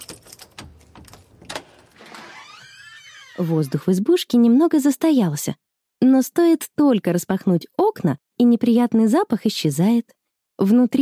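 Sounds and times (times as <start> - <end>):
key rattling and clicking in a cabin door lock: 0.0 - 2.0
small cabin door creaking open: 0.0 - 4.0
speech: 3.4 - 11.0.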